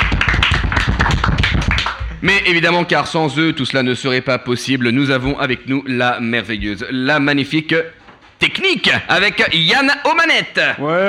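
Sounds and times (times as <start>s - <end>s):
applause from a group: 0.0s - 2.2s
speech: 2.2s - 11.0s.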